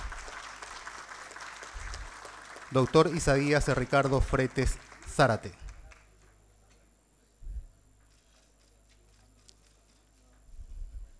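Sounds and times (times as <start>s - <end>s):
loud applause: 0.0s - 6.1s
speech: 2.7s - 5.6s.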